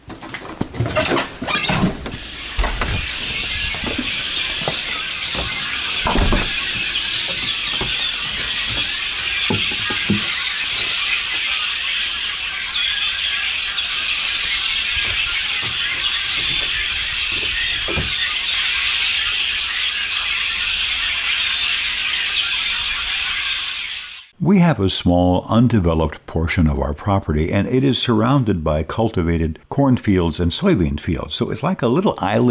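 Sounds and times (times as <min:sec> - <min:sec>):
front door opening with clunks and rattles: 0:00.1 - 0:11.0, 0:14.1 - 0:18.3
migrating birds chirping and twittering in trees: 0:00.4 - 0:24.3
speech: 0:24.7 - 0:32.4.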